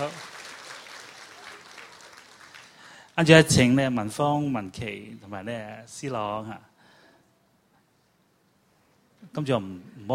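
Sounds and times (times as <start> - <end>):
church service applause welcoming someone after a prayer: 0.0 - 3.1
speech: 3.2 - 6.7, 9.3 - 10.1.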